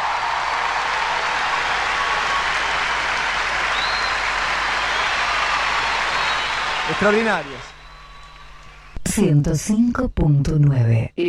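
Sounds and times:
audience applause: 0.0 - 8.7
speech: 6.9 - 7.7, 9.0 - 11.2.

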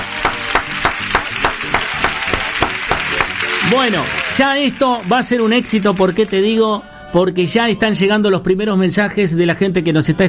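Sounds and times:
applause: 0.0 - 6.7
speech: 3.7 - 10.2.

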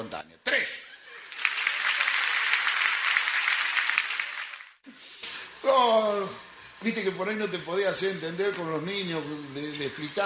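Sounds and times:
crowd applause on cue: 1.1 - 4.8
speech: 5.7 - 10.2.

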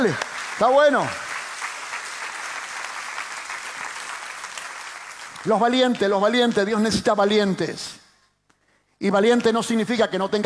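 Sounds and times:
speech: 0.0 - 1.2, 5.4 - 8.0, 9.0 - 10.4
large audience applause: 0.0 - 5.6.

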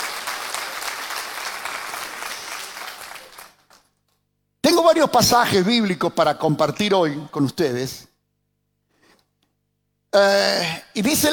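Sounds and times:
audience applause: 0.0 - 3.9
speech: 4.7 - 8.1, 10.1 - 11.3.

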